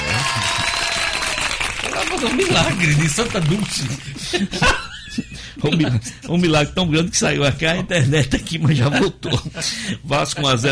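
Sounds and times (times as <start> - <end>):
hands clapping: 0.0 - 4.5
speech: 2.1 - 10.6
laughter: 2.3 - 6.5, 8.0 - 10.6.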